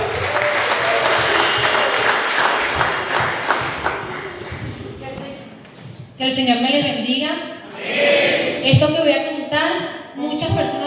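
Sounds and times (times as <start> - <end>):
audience applause: 0.0 - 4.9
speech: 6.2 - 9.7.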